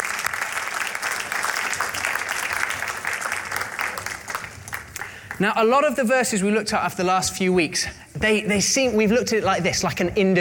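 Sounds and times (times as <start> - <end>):
audience applause: 0.0 - 5.4
speech: 5.4 - 10.4.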